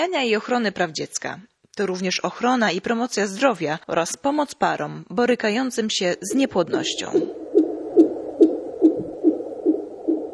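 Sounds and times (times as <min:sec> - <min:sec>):
speech: 0:00.0 - 0:07.4
soft constant hiss: 0:00.0 - 0:10.3
fetal heartbeat on a Doppler monitor: 0:06.7 - 0:10.3.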